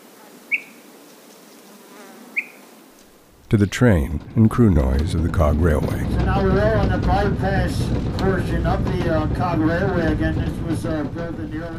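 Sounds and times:
insects buzzing atop Mount Israel in the White Mountains: 0.0s - 3.5s
speech: 3.5s - 11.7s.

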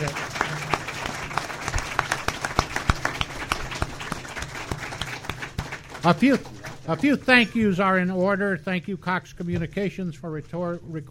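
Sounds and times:
audience applause: 0.0s - 7.5s
speech: 6.0s - 11.1s.

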